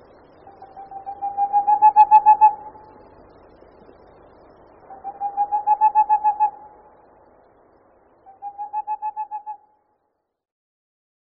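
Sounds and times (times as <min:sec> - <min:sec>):
boreal owl song: 0:00.5 - 0:02.8, 0:04.9 - 0:06.7, 0:08.3 - 0:09.6.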